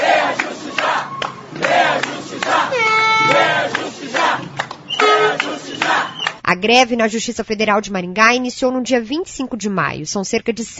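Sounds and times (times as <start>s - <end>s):
horns honking: 0.0s - 6.3s
protest crowd: 0.0s - 6.4s
whistles blowing: 0.6s - 1.5s, 2.7s - 3.4s, 4.9s - 6.4s
speech: 6.6s - 10.7s.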